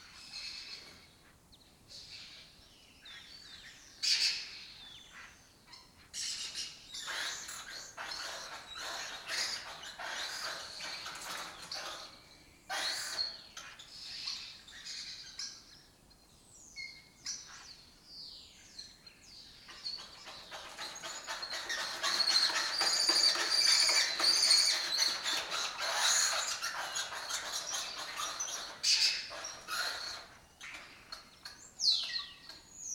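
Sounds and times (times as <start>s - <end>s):
lesser kestrel rasping calls: 6.2s - 15.6s, 19.7s - 32.6s.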